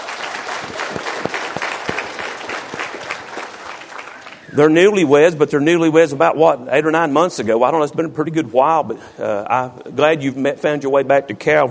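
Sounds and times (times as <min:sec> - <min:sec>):
audience applause: 0:00.0 - 0:04.6
speech: 0:04.6 - 0:11.6.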